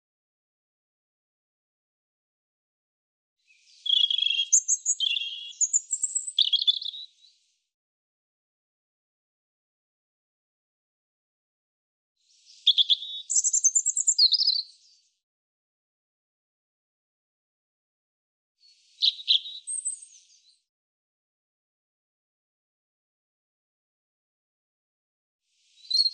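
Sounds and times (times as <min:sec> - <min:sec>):
European robin singing: 0:03.5 - 0:07.4, 0:12.4 - 0:15.0, 0:18.6 - 0:20.6, 0:25.6 - 0:26.1.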